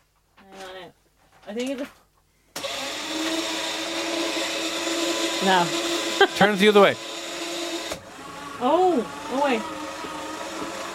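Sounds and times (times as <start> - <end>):
speech: 1.5 - 2.0, 5.4 - 7.0, 8.6 - 9.8
paper shredder running a test shred: 2.6 - 10.9.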